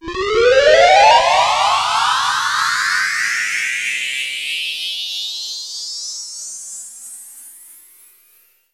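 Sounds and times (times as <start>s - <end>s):
synth sweep effects: 0.0s - 4.4s.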